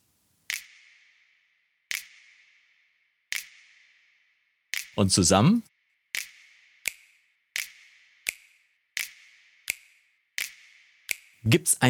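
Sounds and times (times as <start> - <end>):
speech: 5.0 - 5.7, 11.5 - 11.8
finger snaps with long bright reverb: 7.6 - 11.4.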